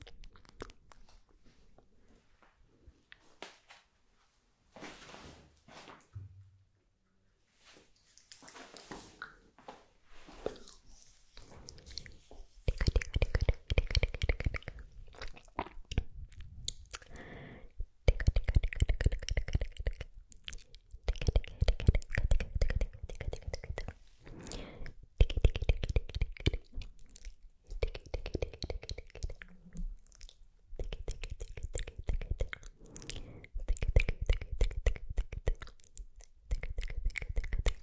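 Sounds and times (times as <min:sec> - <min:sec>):
mouth sounds while applying lip gloss: 0:00.0 - 0:01.2, 0:11.4 - 0:17.2, 0:18.0 - 0:37.8.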